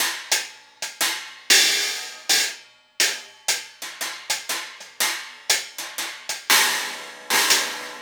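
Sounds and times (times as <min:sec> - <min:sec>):
cymbal pattern: 0:00.0 - 0:07.9.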